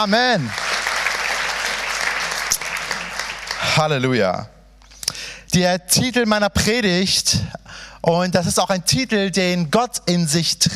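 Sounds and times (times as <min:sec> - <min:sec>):
speech: 0:00.0 - 0:00.7, 0:03.6 - 0:04.6, 0:05.5 - 0:10.7
church service congregation clapping for Jesus: 0:00.0 - 0:04.0.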